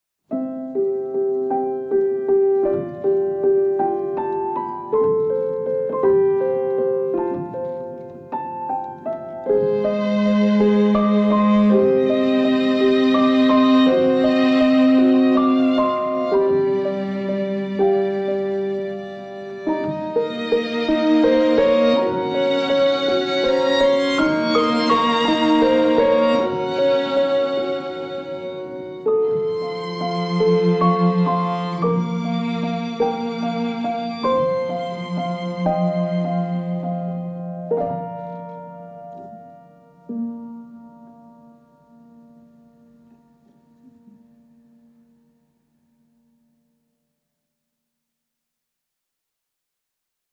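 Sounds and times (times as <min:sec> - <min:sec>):
instrumental music: 0:00.3 - 0:46.2.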